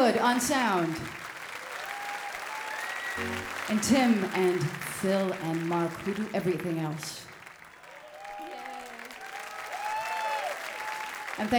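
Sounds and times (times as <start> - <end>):
audience applause: 0.0 - 11.5
speech: 0.1 - 1.2, 3.2 - 7.2, 11.4 - 11.5.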